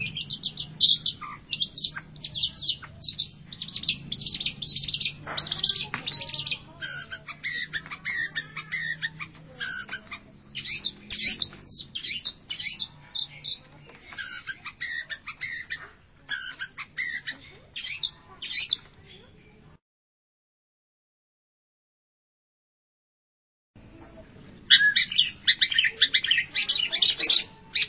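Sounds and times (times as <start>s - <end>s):
long-tailed shrike song of harsh and squeaky notes: 0.0s - 19.0s, 24.6s - 27.8s.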